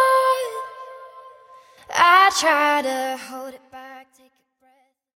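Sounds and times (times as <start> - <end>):
a cappella singing: 0.0 - 4.1.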